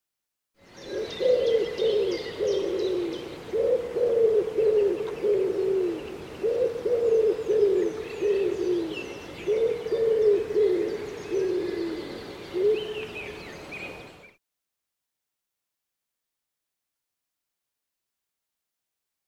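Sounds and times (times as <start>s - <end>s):
Common Wood Pigeon cooing: 0.8s - 14.1s.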